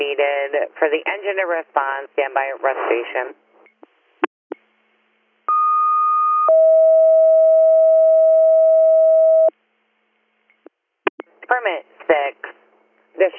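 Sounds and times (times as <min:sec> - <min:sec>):
speech: 0:00.5 - 0:03.5, 0:11.5 - 0:12.6, 0:13.2 - 0:13.3
fire dispatch paging tone: 0:05.5 - 0:09.5.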